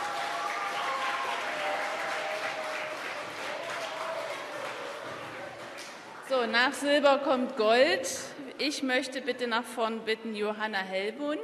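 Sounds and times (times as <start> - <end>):
audience applause: 0.0 - 6.3
speech: 6.3 - 11.4.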